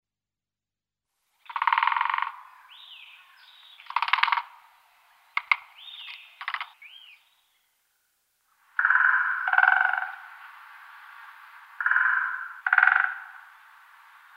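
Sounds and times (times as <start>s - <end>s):
great spotted woodpecker calls: 1.4s - 4.6s, 5.3s - 7.4s, 8.7s - 10.4s, 11.8s - 13.6s.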